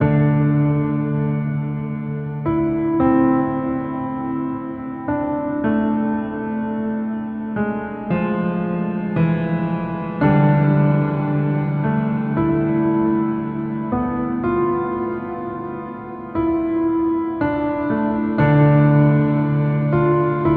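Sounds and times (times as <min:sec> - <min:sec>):
piano theme: 0:00.0 - 0:20.5.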